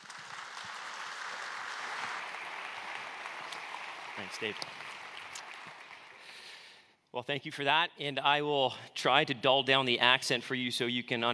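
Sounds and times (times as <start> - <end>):
church congregation applause welcoming a guest preacher: 0.0 - 6.9
speech: 4.2 - 4.9, 7.1 - 11.3.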